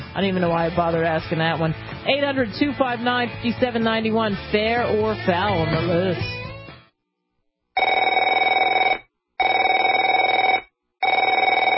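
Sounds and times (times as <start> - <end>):
speech: 0.2 - 6.4
telephone ringing with buzzing bell tone: 7.8 - 11.7.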